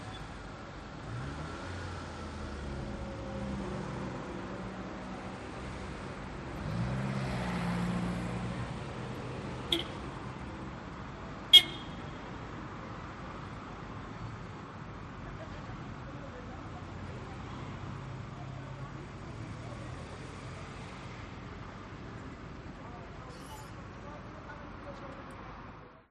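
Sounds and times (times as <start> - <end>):
cars pulling in and away outside a hotel in Doha Qatar at night: 0.0 - 26.0
car horn honks in Doha Qatar: 9.6 - 10.1, 11.5 - 12.2.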